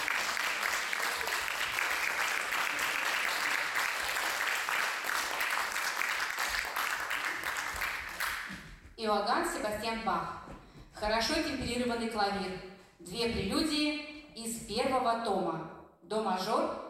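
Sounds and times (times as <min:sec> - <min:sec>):
enthusiastic audience applause: 0:00.0 - 0:08.6
speech: 0:09.0 - 0:10.4, 0:11.0 - 0:16.8.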